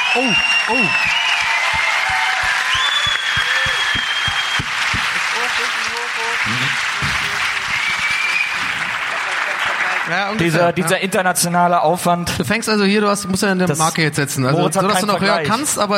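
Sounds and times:
audience applause: 0.0s - 10.8s
speech: 0.2s - 1.2s, 10.1s - 15.9s.

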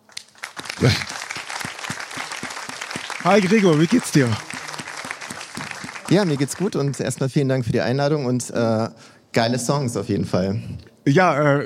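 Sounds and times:
audience applause: 0.0s - 7.3s
speech: 0.8s - 1.1s, 3.2s - 4.5s, 6.1s - 11.6s.

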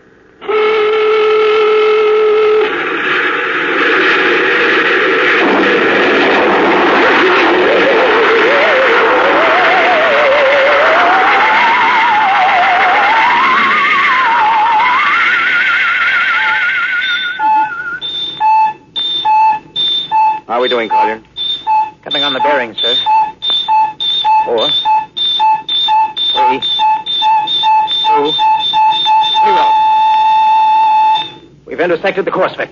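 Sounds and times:
steady droning tone: 0.0s - 31.6s
rocket ship blasting off: 1.7s - 18.1s
short electronic beeps: 17.0s - 31.5s.

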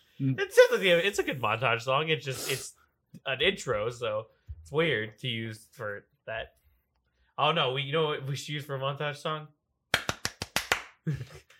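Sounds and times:
speech: 0.2s - 6.6s, 7.4s - 9.6s, 11.1s - 11.5s
hand claps imitating a TV theme: 9.9s - 11.1s.

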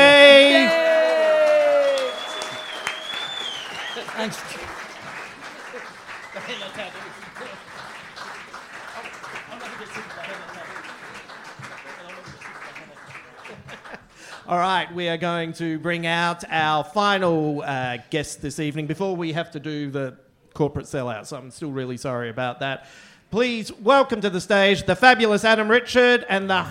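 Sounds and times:
audience applause: 0.0s - 14.6s
laughter: 3.8s - 8.2s, 8.8s - 11.2s, 13.2s - 14.2s
speech: 14.5s - 26.6s.

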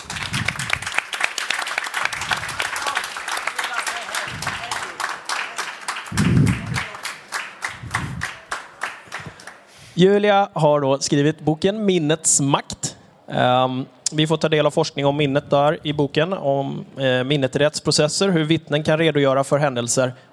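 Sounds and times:
audience applauding: 0.0s - 9.7s
speech: 10.0s - 20.3s.

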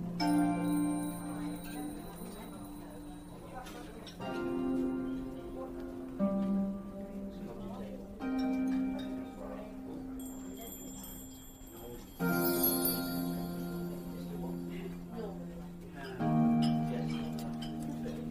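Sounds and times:
soft murmur of voices in a fantasy fairy cafe: 0.0s - 18.3s
bell-like chime tones: 0.2s - 4.0s, 10.2s - 14.9s
bright tinkling: 0.2s - 4.2s, 10.1s - 15.5s.

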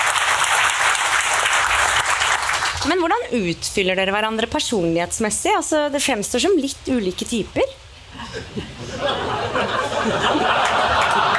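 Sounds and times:
applause: 0.0s - 3.0s, 10.3s - 11.3s
speech: 2.8s - 7.8s, 8.4s - 10.8s
laughter: 8.2s - 11.3s.

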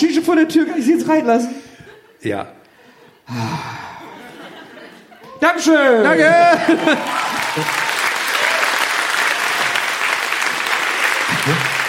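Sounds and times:
speech: 0.0s - 2.6s, 3.3s - 3.9s, 5.4s - 7.8s
laughter: 1.8s - 8.6s, 11.1s - 11.8s
audience applause: 6.1s - 11.8s.

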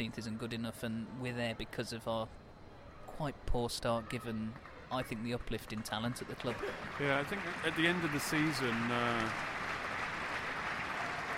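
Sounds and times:
speech: 0.0s - 2.4s, 3.2s - 9.5s
Celtic fans applauding: 5.4s - 11.3s.

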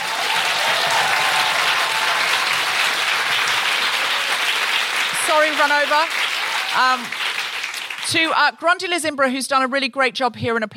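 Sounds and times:
applause from a large audience: 0.0s - 8.2s
speech: 5.4s - 6.2s, 6.8s - 7.2s, 8.1s - 10.7s.

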